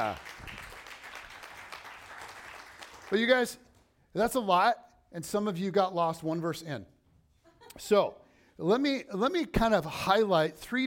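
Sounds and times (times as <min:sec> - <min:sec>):
speech: 0:00.0 - 0:00.5, 0:03.1 - 0:03.6, 0:04.2 - 0:06.9, 0:07.8 - 0:10.8
audience round of applause: 0:00.0 - 0:03.4.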